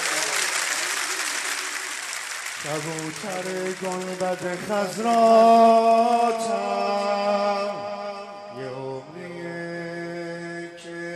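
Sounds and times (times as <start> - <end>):
crowd applause: 0.0 - 6.6
speech: 2.6 - 6.9.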